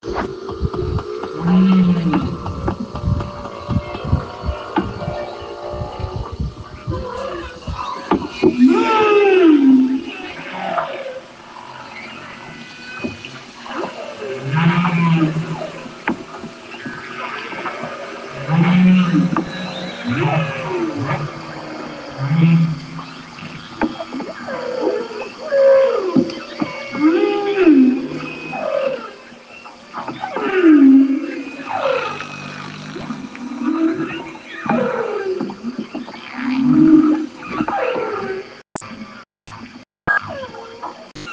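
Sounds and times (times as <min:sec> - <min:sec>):
whale calls: 0:00.4 - 0:38.6.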